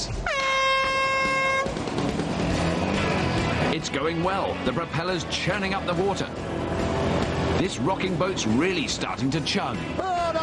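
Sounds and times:
horn signalling race start: 0.0s - 3.8s
speech: 3.9s - 6.7s, 7.6s - 10.1s.

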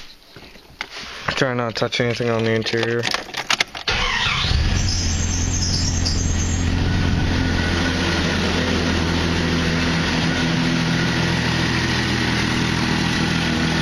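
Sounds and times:
speech: 1.3s - 3.4s
truck engine starting and idling: 3.8s - 13.8s.

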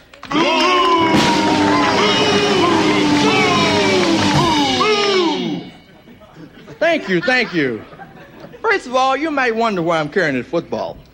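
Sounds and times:
audience applause: 0.4s - 5.2s
laughter: 5.8s - 8.8s
speech: 7.1s - 8.0s, 8.7s - 11.1s.

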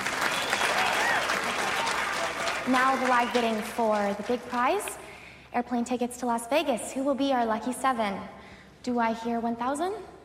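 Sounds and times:
big round of applause: 0.0s - 5.0s
speech: 2.6s - 10.1s.

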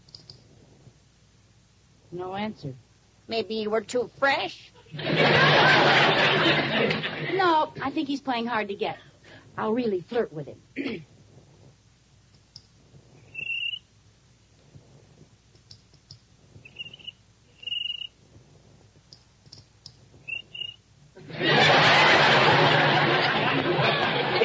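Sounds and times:
speech: 2.1s - 11.1s
laughter: 4.8s - 7.6s, 21.2s - 24.4s
cricket chirping in rhythm: 13.3s - 13.9s, 16.6s - 18.2s, 20.2s - 20.8s.

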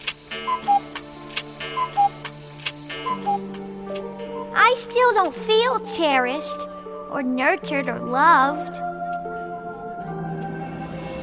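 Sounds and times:
clock chiming: 0.0s - 6.4s
speech: 4.7s - 8.8s.

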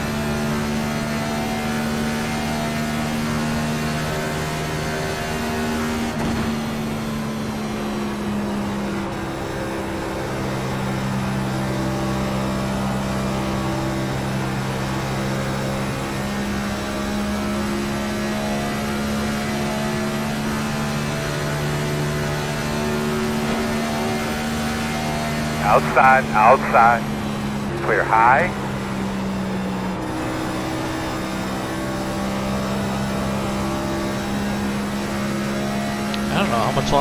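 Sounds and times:
race car engine drone exiting the pits: 0.0s - 36.9s
speech: 26.0s - 27.1s, 27.9s - 28.6s, 36.7s - 36.9s.

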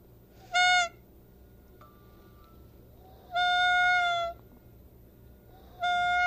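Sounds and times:
shiny noisemaker toy imitating a peacock's call: 0.5s - 1.0s, 3.3s - 4.4s, 5.7s - 6.2s.

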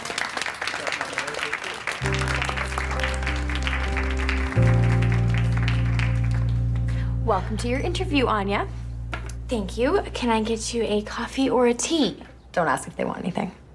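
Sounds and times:
round of applause: 0.0s - 7.0s
speech: 7.3s - 8.8s, 9.5s - 13.6s.

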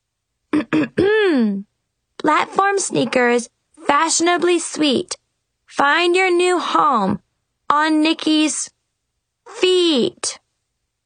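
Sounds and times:
person clearing throat loudly: 0.5s - 1.5s
speech: 2.2s - 8.8s, 9.5s - 10.4s.

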